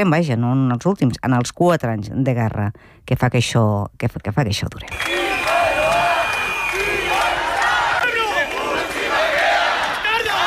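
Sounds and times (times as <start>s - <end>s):
speech: 0.0s - 5.5s
protest crowd of demonstrators shouting and chanting together: 4.9s - 10.4s.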